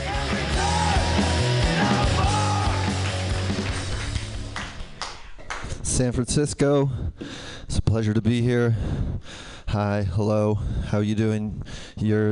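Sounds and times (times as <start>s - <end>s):
whoops and cheers: 0.0s - 3.6s
crowd applauding: 0.0s - 5.8s
speech: 6.0s - 12.3s.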